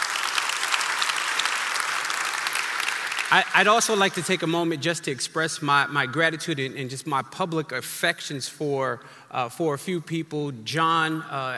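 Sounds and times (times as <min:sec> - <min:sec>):
audience applause: 0:00.0 - 0:04.2
speech: 0:03.3 - 0:11.5.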